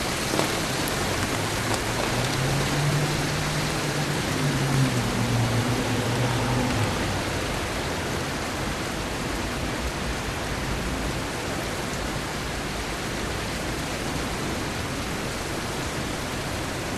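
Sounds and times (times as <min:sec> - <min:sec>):
cars passing: 0:00.0 - 0:10.4
rain heard indoors through an open window: 0:00.0 - 0:16.9.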